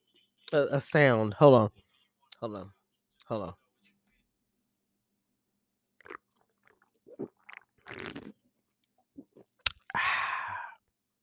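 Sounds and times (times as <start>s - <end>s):
speech: 0.5s - 1.8s, 2.4s - 3.6s, 7.9s - 8.4s
person drinking a cold beer: 6.0s - 8.4s, 9.2s - 10.8s.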